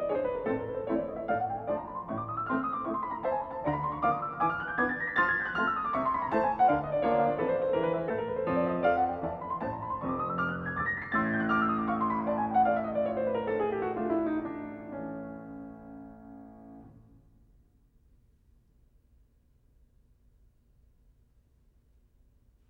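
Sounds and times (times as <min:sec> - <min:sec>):
piano etude in A minor: 0:00.0 - 0:17.3.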